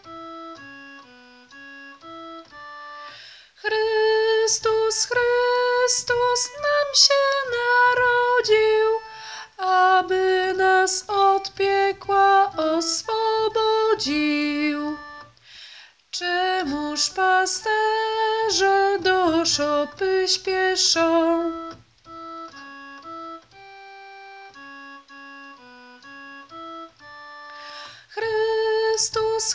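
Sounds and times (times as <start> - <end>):
soprano singing: 3.6 - 15.3, 16.1 - 21.8, 28.1 - 29.5.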